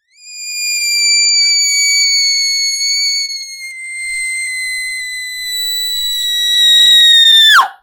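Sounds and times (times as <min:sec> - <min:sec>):
short startled scream: 0:05.0 - 0:07.8.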